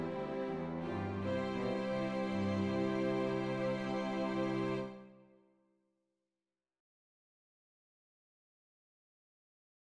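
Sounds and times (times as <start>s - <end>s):
strings: 0.0s - 5.3s.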